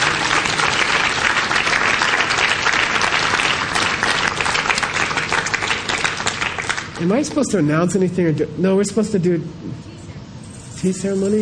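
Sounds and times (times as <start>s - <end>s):
audience applause: 0.0s - 7.2s
speech: 7.0s - 10.0s, 10.8s - 11.4s.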